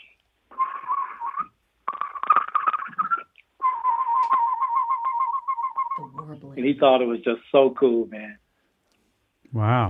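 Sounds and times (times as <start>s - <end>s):
person whistling imitations of bird calls: 0.5s - 1.6s, 2.9s - 6.2s
speech: 6.3s - 8.4s, 9.5s - 9.8s.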